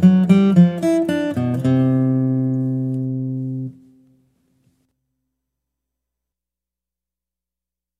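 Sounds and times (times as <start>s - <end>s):
guitar: 0.0s - 4.8s.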